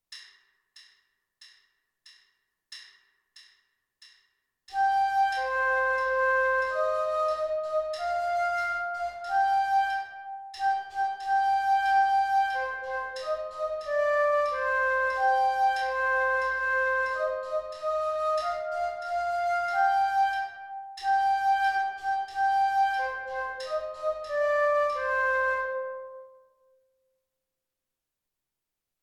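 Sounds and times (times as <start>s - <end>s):
flute: 4.7s - 26.8s.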